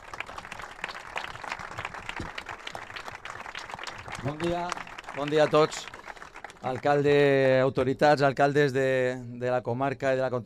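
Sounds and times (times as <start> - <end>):
audience applause: 0.0 - 7.1
speech: 4.2 - 6.0, 6.6 - 10.4.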